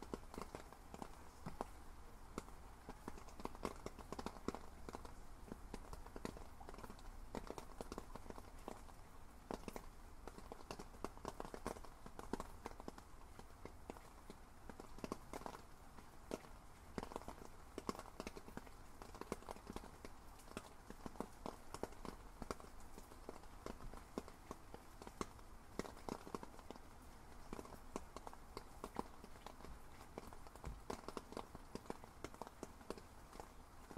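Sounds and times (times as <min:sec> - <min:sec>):
rain hitting rain gear: 0:00.0 - 0:33.9.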